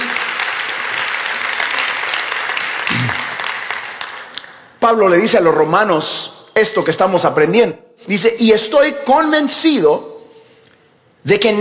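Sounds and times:
audience applauding: 0.0 - 4.8
speech: 4.8 - 10.1, 11.2 - 11.5.

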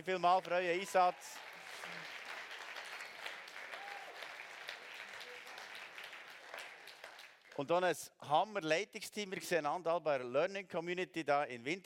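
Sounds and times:
speech: 0.0 - 1.5, 7.6 - 11.8
sustained applause from a large audience for a pastor couple: 0.0 - 7.7.

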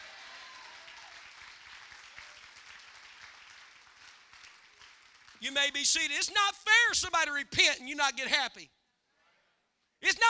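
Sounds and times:
audience clapping: 0.0 - 5.8
speech: 5.4 - 8.8, 10.0 - 10.2.

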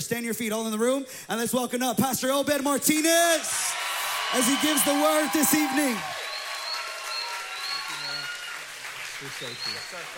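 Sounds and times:
speech: 0.0 - 6.2, 9.2 - 10.1
audience clapping: 2.6 - 10.1.

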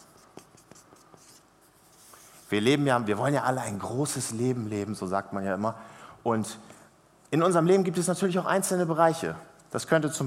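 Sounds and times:
pen writing a word by hand: 0.0 - 2.2
speech: 2.5 - 10.2.

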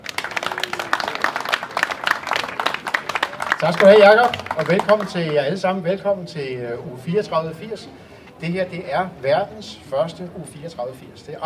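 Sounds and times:
audience applause welcoming a chairman of a Danish gathering: 0.0 - 5.4
speech: 3.6 - 11.4.

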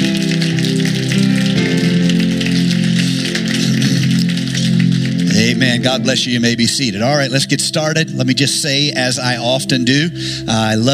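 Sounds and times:
audience hand clapping in praise: 0.0 - 8.5
low musical tones: 0.0 - 10.9
speech: 5.5 - 10.9.

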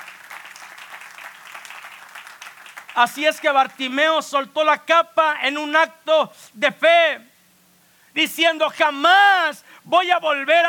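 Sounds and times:
audience applause: 0.0 - 3.8
speech: 3.0 - 7.3, 8.2 - 10.6.

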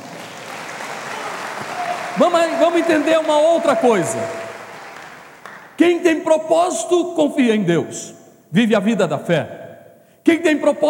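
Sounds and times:
audience applauding: 0.0 - 5.8
speech: 2.2 - 4.4, 5.8 - 9.6, 10.3 - 10.8.

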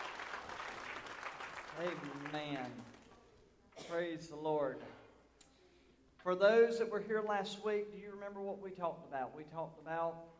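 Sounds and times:
audience hand clapping: 0.0 - 3.2
speech: 1.8 - 3.0, 3.9 - 5.0, 6.2 - 10.3.

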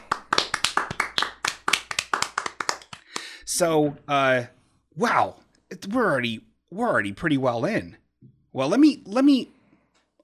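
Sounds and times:
people clapping: 0.0 - 3.4
speech: 3.5 - 9.6.

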